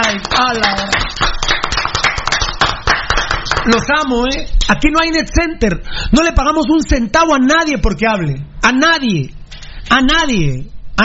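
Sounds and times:
applause: 0.0 - 3.9
speech: 3.7 - 11.0.

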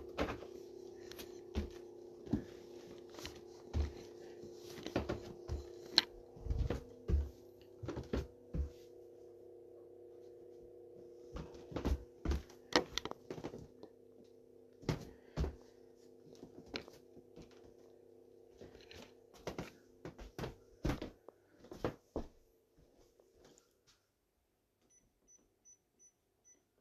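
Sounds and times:
low-mid hum of coffee brewing: 0.0 - 20.0.

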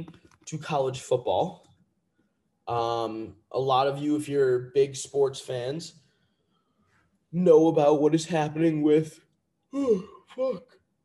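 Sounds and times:
speech: 0.0 - 1.7, 2.7 - 6.0, 7.3 - 10.8
huge human yawn: 9.8 - 10.6.

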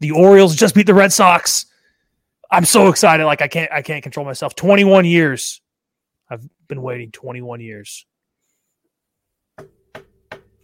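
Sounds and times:
speech: 0.0 - 1.7, 2.5 - 5.6, 6.3 - 8.1
knocking on wood: 9.6 - 10.6.

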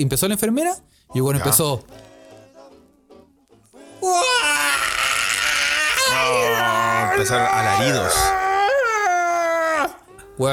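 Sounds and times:
speech: 0.0 - 2.1, 4.0 - 4.5, 7.2 - 8.3
person imitating hellish screams of a patient: 4.0 - 10.5.

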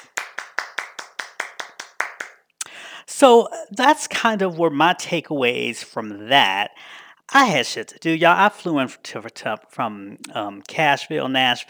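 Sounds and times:
hands clapping: 0.0 - 2.8
speech: 3.2 - 11.6.

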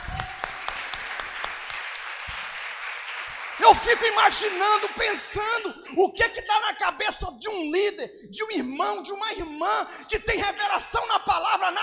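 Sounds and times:
audience applauding: 0.0 - 5.8
speech: 3.6 - 11.8.

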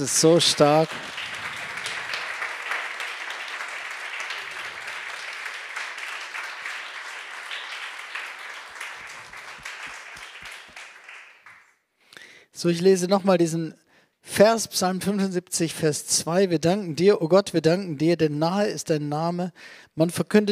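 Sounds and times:
speech: 0.0 - 1.2, 12.6 - 20.5
audience applause: 0.0 - 11.7.

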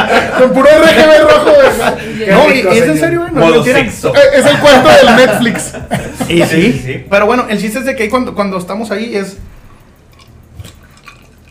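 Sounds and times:
laughter: 0.0 - 3.2, 4.2 - 7.1
speech: 0.2 - 9.6
drinking from a glass: 9.9 - 11.4.

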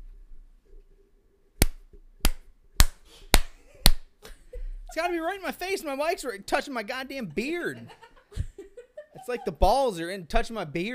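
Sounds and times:
hand clapping: 1.6 - 4.4
speech: 5.0 - 8.0, 9.3 - 10.9
laughter: 7.2 - 9.6.

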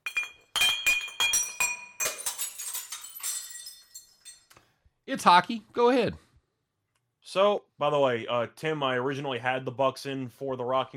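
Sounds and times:
glass bottles clinking together: 0.0 - 4.5
speech: 5.1 - 6.2, 7.3 - 10.9.

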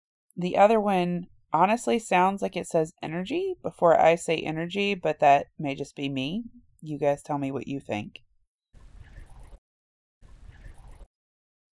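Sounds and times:
speech: 0.4 - 8.3
rapidly dripping water: 10.2 - 11.1.

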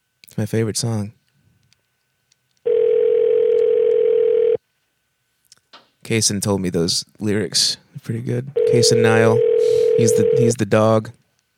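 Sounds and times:
speech: 0.4 - 1.2, 6.1 - 11.2
telephone ringing tone: 2.7 - 4.6, 8.6 - 10.5.

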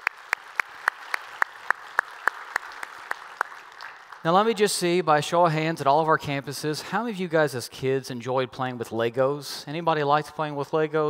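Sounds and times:
sharp evenly timed claps: 0.0 - 4.3
congregation applauding: 0.0 - 4.9
speech: 4.2 - 11.0.

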